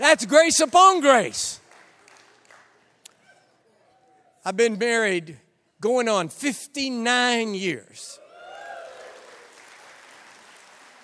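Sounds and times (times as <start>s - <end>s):
speech: 0.0s - 1.6s, 4.4s - 8.2s
audience applause: 1.6s - 2.8s, 8.5s - 11.0s.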